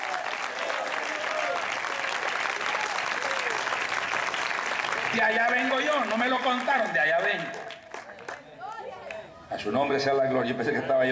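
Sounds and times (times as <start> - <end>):
audience applause: 0.0 - 8.5
speech: 5.1 - 7.7, 9.5 - 11.1.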